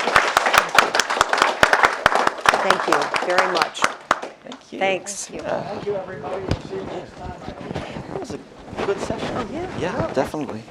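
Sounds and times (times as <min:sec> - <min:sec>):
audience applause: 0:00.0 - 0:04.4
speech: 0:02.8 - 0:10.6.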